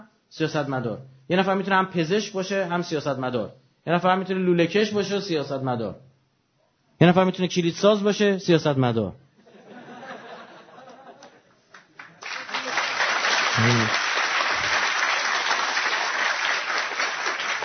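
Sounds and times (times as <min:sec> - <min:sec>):
speech: 0:00.0 - 0:06.0, 0:07.0 - 0:09.2
laughter: 0:09.4 - 0:11.5, 0:13.6 - 0:14.0
audience applause: 0:11.7 - 0:17.6.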